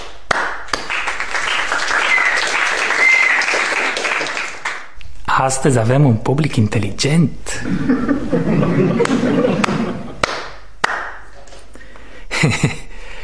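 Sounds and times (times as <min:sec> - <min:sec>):
crowd applause: 0:00.3 - 0:04.9, 0:08.3 - 0:10.5
whistles: 0:01.5 - 0:04.2
speech: 0:05.4 - 0:09.8
laughter: 0:07.6 - 0:10.3, 0:12.3 - 0:12.9.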